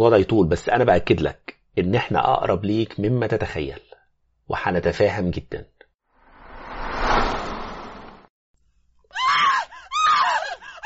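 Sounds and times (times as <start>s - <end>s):
speech: 0.0s - 3.9s, 4.5s - 5.7s
woman's scream in a horror story: 9.1s - 10.8s.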